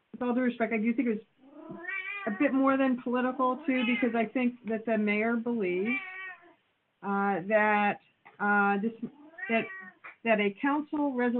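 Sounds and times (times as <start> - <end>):
speech: 0.2 - 6.1, 7.0 - 11.3
pet cat meowing in long drawn-out cries: 1.5 - 2.5, 3.6 - 4.1, 5.9 - 6.5, 9.1 - 10.1.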